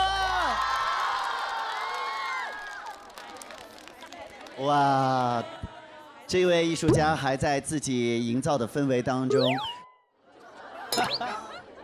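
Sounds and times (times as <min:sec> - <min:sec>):
audience applause: 0:00.1 - 0:04.8
speech: 0:04.6 - 0:05.6, 0:06.3 - 0:09.7
laughter: 0:10.2 - 0:11.8.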